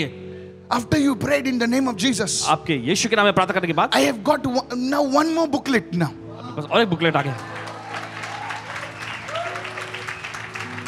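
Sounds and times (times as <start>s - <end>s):
speech: 0.0s - 7.6s
audience clapping: 7.0s - 10.8s.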